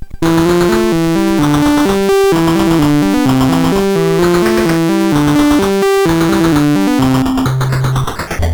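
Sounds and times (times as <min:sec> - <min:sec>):
yodel tune on SID CSG8580R5 chip: 0:00.2 - 0:08.4.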